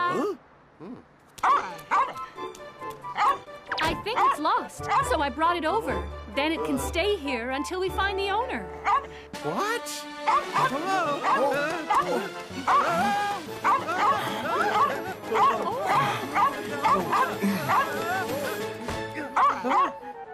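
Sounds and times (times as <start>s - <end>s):
speech: 0.1s - 1.9s, 4.0s - 18.6s
small dog barking: 1.4s - 2.2s, 8.8s - 9.1s, 10.3s - 12.8s, 13.6s - 17.8s
laughter: 10.4s - 20.1s.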